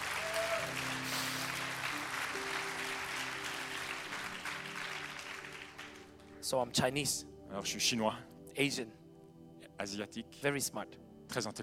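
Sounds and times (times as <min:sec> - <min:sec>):
crowd clapping: 0:00.0 - 0:06.4
speech: 0:06.4 - 0:09.0, 0:09.8 - 0:11.6.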